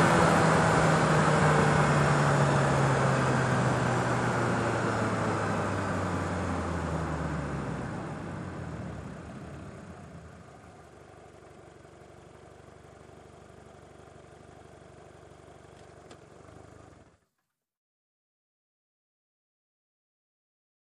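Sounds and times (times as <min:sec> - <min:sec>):
sedan accelerating slowly: 0:00.0 - 0:10.8.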